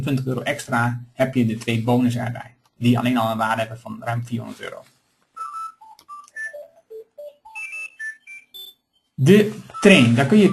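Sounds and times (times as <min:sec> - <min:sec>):
speech: 0:00.0 - 0:05.0, 0:09.2 - 0:10.5
mobile phone ringing: 0:05.4 - 0:10.5.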